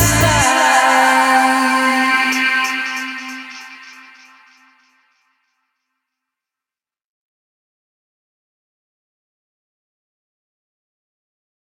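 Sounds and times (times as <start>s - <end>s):
dubstep remix: 0.0s - 4.7s.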